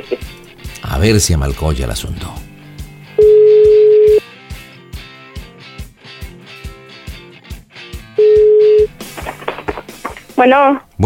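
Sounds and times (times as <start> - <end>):
speech: 0.9 - 2.4, 10.4 - 11.0
mobile phone call ringing: 3.2 - 4.2, 8.2 - 9.0.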